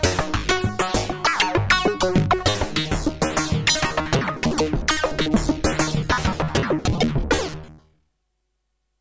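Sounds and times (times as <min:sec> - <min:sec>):
synthesizer panning: 0:00.0 - 0:07.9.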